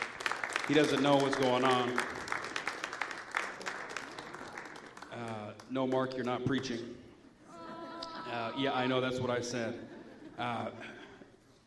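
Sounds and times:
audience applauding: 0:00.0 - 0:05.4
speech: 0:00.7 - 0:02.2, 0:05.2 - 0:07.1, 0:08.3 - 0:11.0
laughter: 0:07.4 - 0:08.9, 0:09.6 - 0:11.4.

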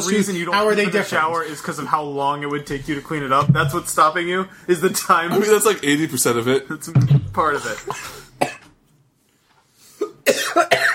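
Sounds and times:
speech: 0:00.0 - 0:08.5
person coughing from water down the wrong pipe: 0:07.5 - 0:08.7, 0:10.0 - 0:10.9.

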